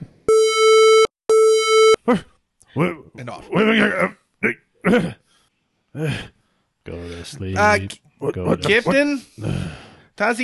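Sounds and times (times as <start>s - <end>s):
proximity alarm beeping: 0.3s - 2.0s
speech: 2.1s - 5.2s, 6.0s - 10.4s.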